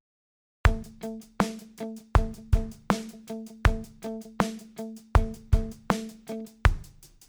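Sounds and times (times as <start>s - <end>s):
groove music: 0.7s - 6.9s.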